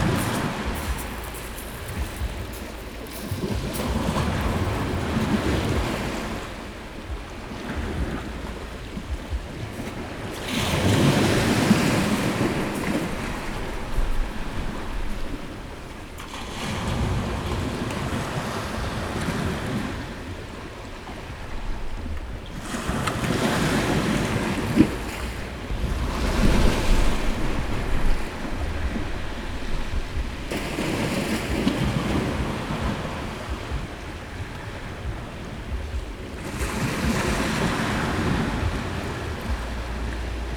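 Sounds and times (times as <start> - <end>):
sea at Metalia beach on Thassos from a rock hollow: 0.0 - 40.5.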